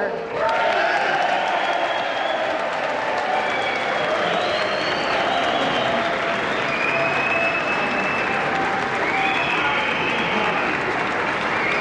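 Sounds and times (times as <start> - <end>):
applause in legislative assembly: 0.0 - 11.8
faint high whistles: 1.4 - 2.6, 3.3 - 10.8, 11.4 - 11.8
crowd murmur: 2.5 - 11.8.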